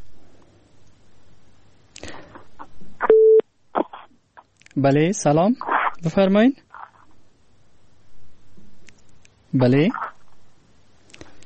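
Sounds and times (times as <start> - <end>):
phone line beep after a caller was cut off: 3.0 - 3.4
speech: 4.8 - 6.6, 9.5 - 10.0.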